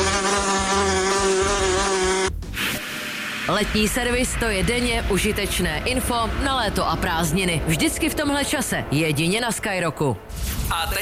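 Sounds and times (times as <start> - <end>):
wasp buzzing: 0.0 - 2.3
speech: 3.5 - 11.0.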